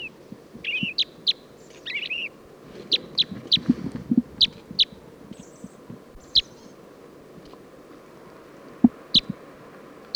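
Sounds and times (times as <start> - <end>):
purple finch song: 0.0 - 6.8.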